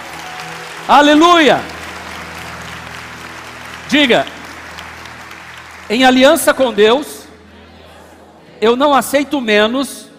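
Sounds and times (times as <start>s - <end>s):
loud audience applause: 0.0s - 7.2s
speech: 0.9s - 1.7s, 3.9s - 4.4s, 5.9s - 7.1s, 8.6s - 10.0s.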